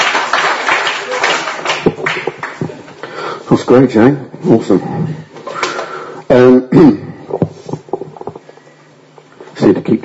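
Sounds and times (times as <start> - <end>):
round of applause: 0.0 - 2.9
speech: 3.5 - 5.2, 6.3 - 7.1.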